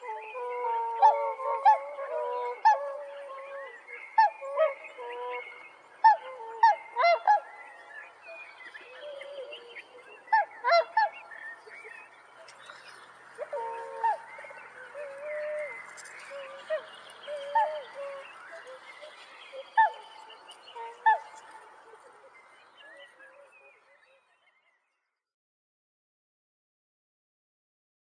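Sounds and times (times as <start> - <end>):
black-billed swan calling: 0.0 - 7.8, 8.8 - 22.3.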